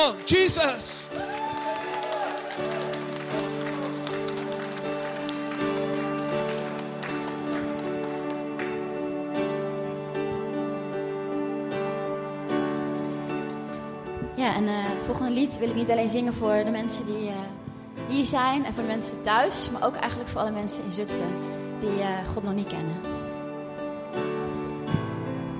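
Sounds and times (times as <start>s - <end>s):
speech: 0.0s - 1.7s, 14.6s - 23.3s
crowd clapping: 0.0s - 9.4s
keyboard or organ chords: 0.0s - 25.5s.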